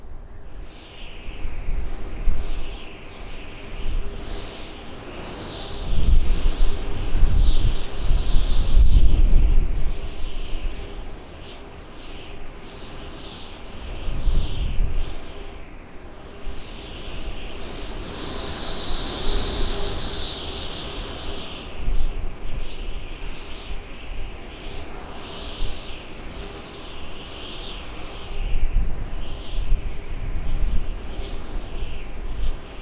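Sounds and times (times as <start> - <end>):
wind: 0.0 - 32.7.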